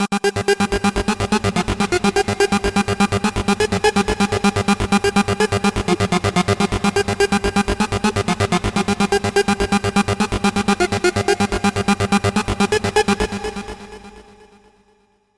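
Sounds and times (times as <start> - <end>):
trance music: 0.0 - 14.6.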